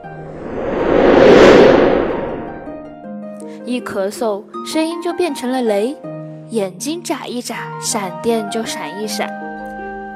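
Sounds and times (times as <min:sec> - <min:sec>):
wind blowing sound effect: 0:00.0 - 0:03.0
speech: 0:03.8 - 0:09.4.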